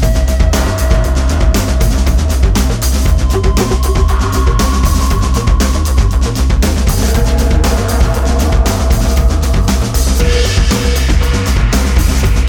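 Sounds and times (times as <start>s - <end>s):
forest flanger sampler sound: 0.2s - 12.4s.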